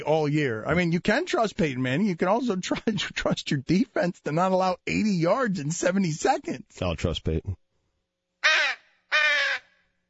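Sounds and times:
speech: 0:00.0 - 0:07.6
harsh bird squawks, possibly a seagull: 0:08.4 - 0:10.0.

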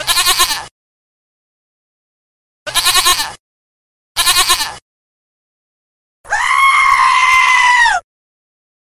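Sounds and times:
goat bleating: 0:00.0 - 0:00.7, 0:02.7 - 0:03.4, 0:04.2 - 0:04.8, 0:06.3 - 0:08.0.

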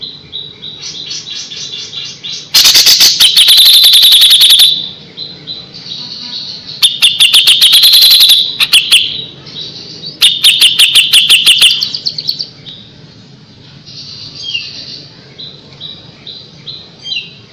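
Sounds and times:
grey-cheeked bulbul song: 0:01.2 - 0:05.7, 0:06.6 - 0:09.4, 0:10.1 - 0:12.5.

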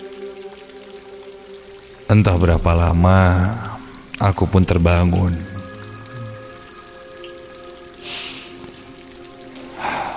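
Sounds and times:
heavy rain falling outside: 0:00.0 - 0:10.1
speech: 0:02.1 - 0:05.5.

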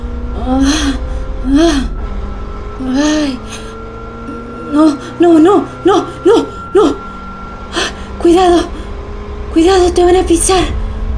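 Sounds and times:
low steady hum: 0:00.0 - 0:11.1
person moaning in restless sleep in a pickup truck: 0:00.4 - 0:02.0, 0:02.8 - 0:07.1
speech: 0:00.5 - 0:01.9, 0:04.8 - 0:06.5, 0:08.3 - 0:08.7, 0:09.6 - 0:10.8.

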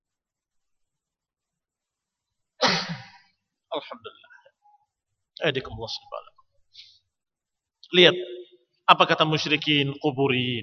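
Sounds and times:
sneeze: 0:02.6 - 0:03.2
speech: 0:03.8 - 0:04.4, 0:05.4 - 0:06.2, 0:07.9 - 0:10.6.

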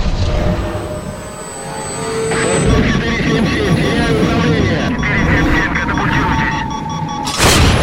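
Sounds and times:
fighter jet engine roar falling near a warship: 0:00.0 - 0:07.8
voices: 0:02.3 - 0:07.2
booms and gunfire-like blasts: 0:07.3 - 0:07.8.

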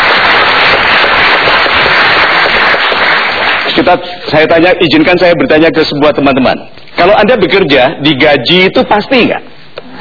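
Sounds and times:
audience applause: 0:00.0 - 0:03.9
speech: 0:03.9 - 0:09.6.

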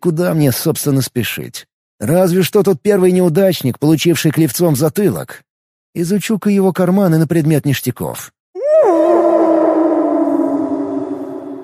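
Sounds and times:
speech: 0:00.0 - 0:08.4
wolf howling: 0:08.6 - 0:11.6.

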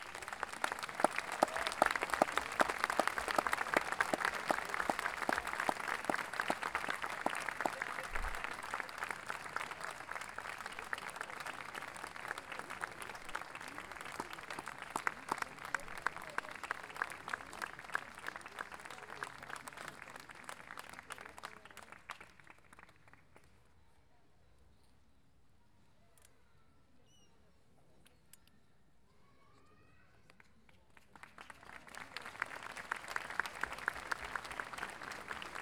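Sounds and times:
audience applause at a music festival: 0:00.0 - 0:23.0, 0:31.2 - 0:35.6.

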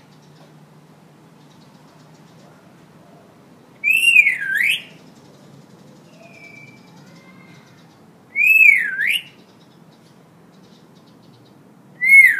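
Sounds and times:
Hill myna in full active song: 0:03.8 - 0:05.0, 0:06.1 - 0:06.8, 0:08.4 - 0:09.4, 0:12.0 - 0:12.3.

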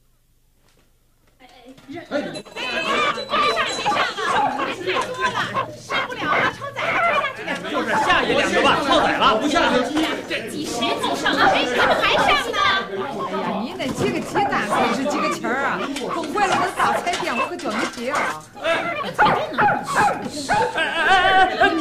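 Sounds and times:
several people talking at once: 0:01.4 - 0:21.7
laughter: 0:02.1 - 0:21.7
dog barking and whimpering: 0:02.7 - 0:07.5, 0:14.4 - 0:20.8.

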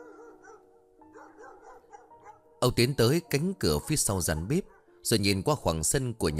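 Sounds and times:
neighbour's dogs barking: 0:00.0 - 0:02.6, 0:04.3 - 0:05.0
speech: 0:02.6 - 0:06.3.

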